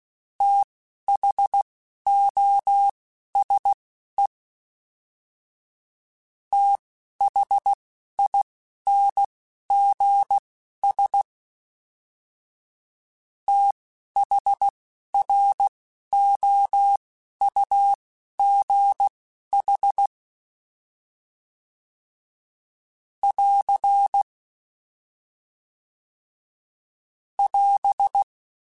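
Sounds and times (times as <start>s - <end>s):
Morse code CW code groups: 0.4s - 3.8s, 6.5s - 11.2s, 13.5s - 20.1s, 23.2s - 24.3s, 27.4s - 28.3s.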